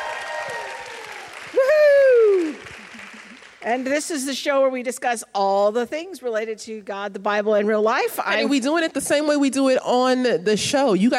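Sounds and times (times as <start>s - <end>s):
audience applause: 0.0s - 3.6s
speech: 3.6s - 11.1s.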